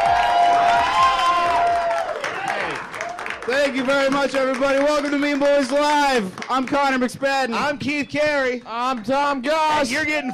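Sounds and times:
audience whoops and shouts: 0.0s - 3.3s, 9.7s - 10.3s
live audience clapping: 0.0s - 7.6s
speech: 3.6s - 10.3s.

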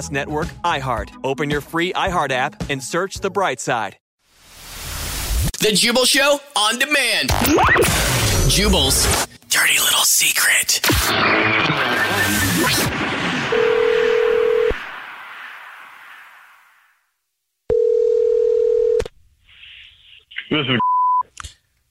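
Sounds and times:
speech: 0.0s - 4.0s, 5.6s - 13.7s, 20.5s - 20.8s
loud busy burst: 11.0s - 15.2s
phone line ringing on an outgoing call: 13.5s - 14.8s, 17.7s - 19.0s
short beeps: 20.8s - 21.2s.

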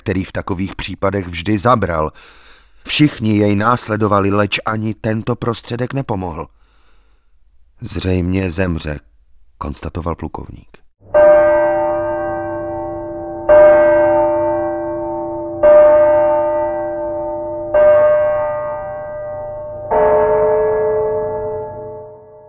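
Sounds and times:
speech: 0.0s - 6.6s, 7.8s - 11.2s
church tower bell tolling: 11.1s - 22.4s.

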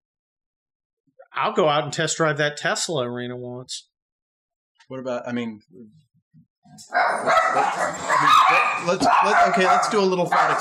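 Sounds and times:
speech: 1.3s - 3.9s, 4.9s - 6.0s, 6.7s - 10.5s
pet dog barking and yipping excitedly: 6.8s - 10.5s.

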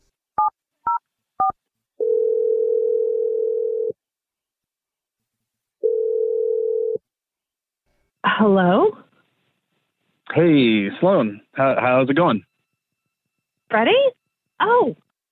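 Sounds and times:
long steady mid-pitched telephone ringing tones: 0.9s - 4.0s, 5.8s - 7.0s
speech: 8.4s - 9.0s, 10.3s - 12.5s, 13.7s - 15.0s.

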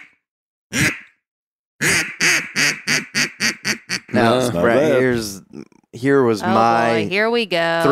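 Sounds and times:
person imitating a gadwall duck quack: 0.0s - 1.2s, 1.8s - 4.3s
speech: 4.2s - 7.8s.

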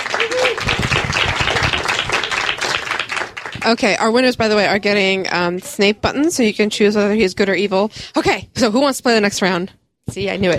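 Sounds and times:
audience applause: 0.0s - 4.1s
speech: 0.2s - 0.8s, 3.7s - 10.5s.

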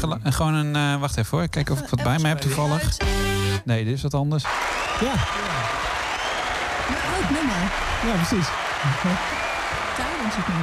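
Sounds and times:
speech: 0.0s - 5.8s, 7.2s - 9.5s, 10.2s - 10.6s
applause: 4.5s - 10.6s.

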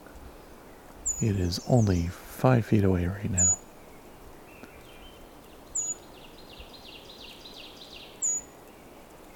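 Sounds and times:
bird chirping: 0.7s - 2.1s, 3.2s - 9.3s
faint twittering: 1.0s - 2.2s, 3.3s - 8.5s
speech: 1.2s - 3.6s.

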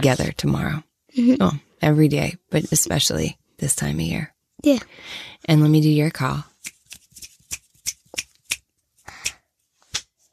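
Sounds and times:
speech: 0.0s - 6.5s
hand clap: 6.6s - 10.1s
finger snaps: 7.5s - 10.1s.

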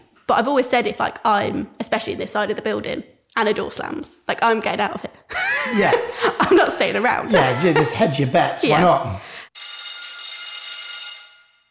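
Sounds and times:
speech: 0.3s - 9.4s
laughter: 5.3s - 9.2s
bell ringing: 8.7s - 11.6s.

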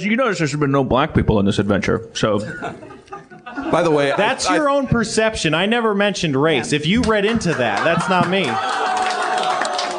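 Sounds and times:
speech: 0.0s - 2.9s, 3.7s - 9.0s
laughter: 2.4s - 5.1s, 6.6s - 9.9s
odd applause: 6.9s - 9.9s.

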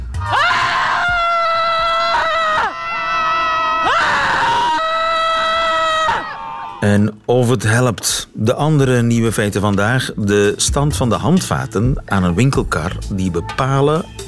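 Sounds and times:
group of people screaming on a beach: 0.1s - 6.8s
speech: 6.8s - 14.2s.

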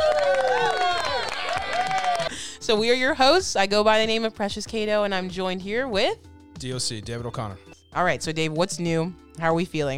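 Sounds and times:
audience clapping: 0.0s - 2.3s
audience whoops and shouts: 0.0s - 2.3s
speech: 2.7s - 9.9s.

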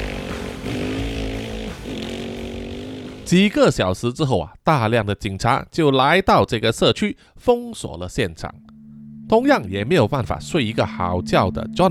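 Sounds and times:
off-road motorcycle engine starting and revving: 0.0s - 3.3s
speech: 3.3s - 8.7s, 9.3s - 11.9s.

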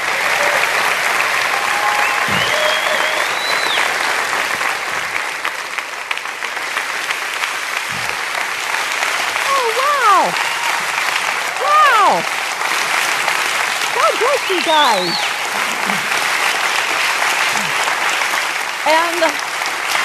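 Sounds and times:
audience at a Christian ministry event clapping for a guest speaker: 0.0s - 20.0s
audience whistles: 1.8s - 4.0s, 14.9s - 15.5s
speech: 14.5s - 15.3s, 18.8s - 19.4s.

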